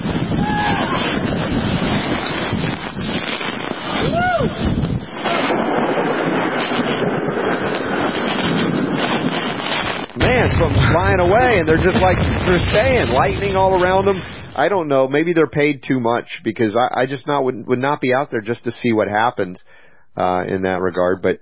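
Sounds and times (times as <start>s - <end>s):
hurricane wind: 0.0s - 15.1s
speech: 11.0s - 21.3s.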